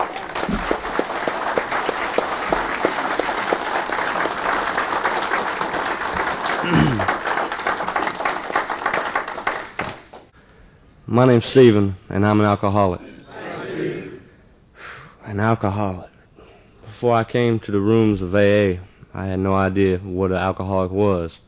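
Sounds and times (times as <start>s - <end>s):
audience applause welcoming a speaker at an Alcoholics Anonymous meeting: 0.0s - 10.3s
speech: 11.1s - 13.1s, 15.4s - 16.1s, 17.0s - 21.4s.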